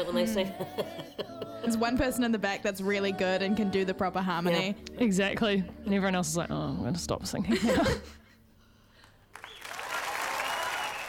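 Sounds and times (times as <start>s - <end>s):
speech: 0.0s - 8.2s
sudden clap: 9.0s - 11.0s
applause after a live folk song performance: 9.3s - 11.0s.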